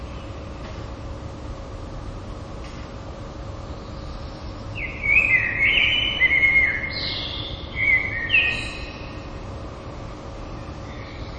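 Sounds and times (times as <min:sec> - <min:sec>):
common blackbird singing: 0:03.7 - 0:09.4, 0:10.4 - 0:11.3.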